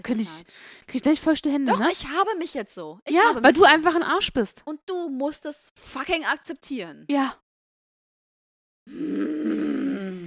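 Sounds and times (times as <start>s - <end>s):
speech: 0.0s - 7.4s, 8.9s - 9.9s
person imitating a disapproving cartoon-style groan: 8.9s - 10.2s.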